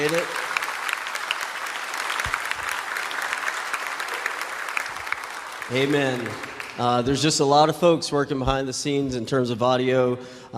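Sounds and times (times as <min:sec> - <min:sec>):
speech: 0:00.0 - 0:00.5, 0:05.7 - 0:10.5
audience applauding loudly: 0:00.0 - 0:07.3.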